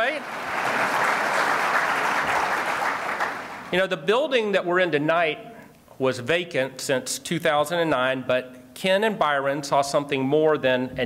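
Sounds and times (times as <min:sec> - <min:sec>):
audience applause: 0:00.0 - 0:03.7
speech: 0:03.7 - 0:11.0.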